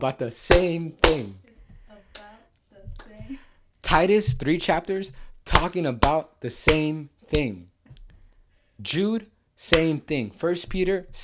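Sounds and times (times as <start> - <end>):
speech: 0.0 - 1.4, 3.3 - 7.7, 8.8 - 11.2
hand clapping for emphasis: 0.5 - 1.4, 3.0 - 3.3, 5.5 - 7.5, 9.7 - 10.1.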